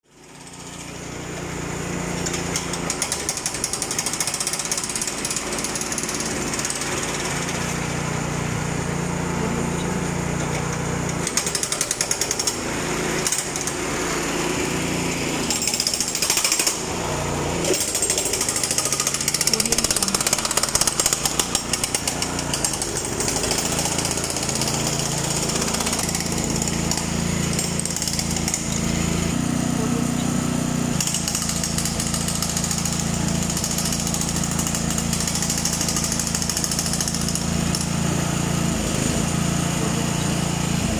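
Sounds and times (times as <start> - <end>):
pneumatic drill during street work: 0.0 - 40.9.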